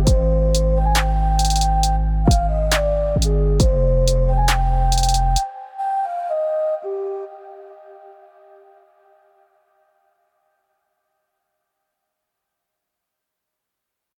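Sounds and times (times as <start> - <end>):
ocarina top line melody: 0.0 - 9.9.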